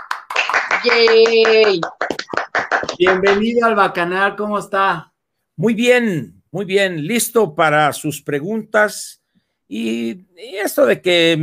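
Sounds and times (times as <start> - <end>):
audience applause: 0.0 - 3.5
person holding a long sustained cheer: 0.7 - 2.0
speech: 0.8 - 2.2, 2.9 - 11.4.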